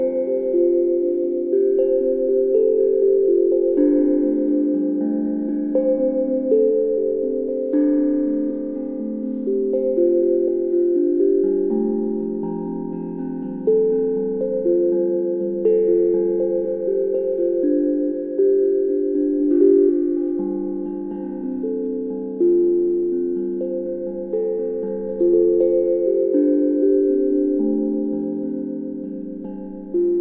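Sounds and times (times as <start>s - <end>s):
F major pentatonic scale tones tuned to A 440: 0.0s - 30.1s.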